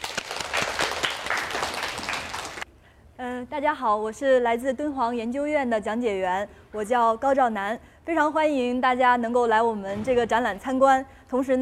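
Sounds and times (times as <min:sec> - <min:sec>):
audience applause: 0:00.0 - 0:02.6
speech: 0:03.5 - 0:11.5.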